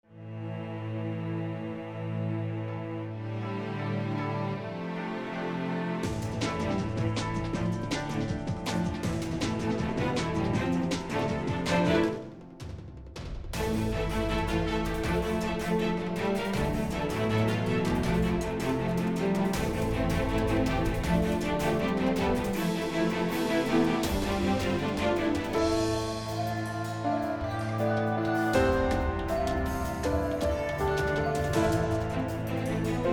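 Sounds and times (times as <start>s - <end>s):
fast strings: 0.3s - 33.1s.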